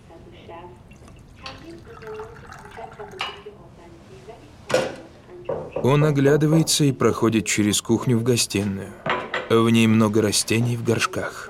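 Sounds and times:
tea being poured from a teapot: 0:00.9 - 0:03.5
speech: 0:01.6 - 0:11.4.

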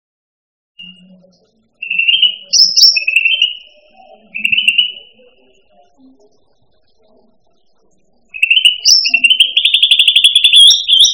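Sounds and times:
bird song with short bright high whistled and chirping notes: 0:00.8 - 0:05.6, 0:08.3 - 0:11.1.

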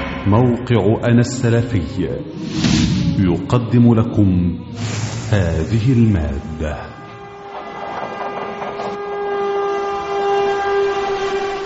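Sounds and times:
train rumbling: 0:00.0 - 0:11.6
speech: 0:00.2 - 0:07.0
train horn blast: 0:05.7 - 0:11.6.

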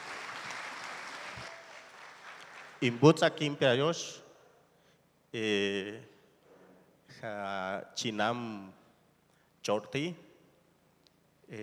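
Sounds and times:
faint applause at a gathering of Maya Ch'orti' indigenous authorities in Guatemala: 0:00.0 - 0:02.8
speech: 0:02.8 - 0:04.2, 0:05.3 - 0:06.1, 0:07.1 - 0:08.8, 0:09.6 - 0:10.2.

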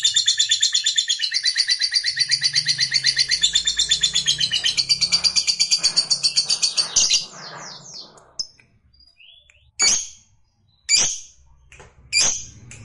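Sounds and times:
lovebird chattering trill: 0:00.0 - 0:08.6
lovebird sharp chirps: 0:01.1 - 0:12.8.

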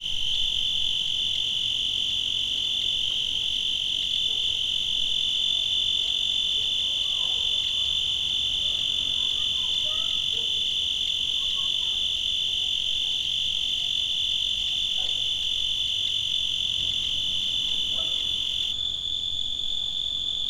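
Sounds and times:
cricket trilling: 0:00.0 - 0:20.4.

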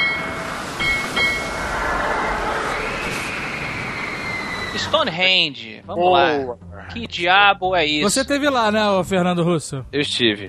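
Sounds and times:
train sound effect: 0:00.0 - 0:05.8
speech: 0:04.8 - 0:10.4.

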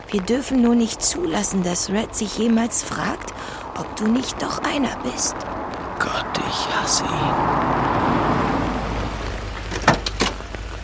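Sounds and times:
rain falling: 0:00.0 - 0:10.8
speech: 0:00.1 - 0:08.2
car: 0:03.2 - 0:10.8.

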